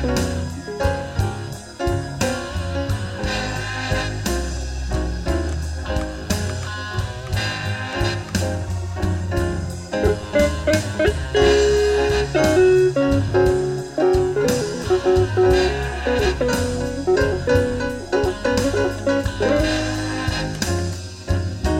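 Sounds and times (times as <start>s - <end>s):
slow blues guitar: 0.0s - 21.7s.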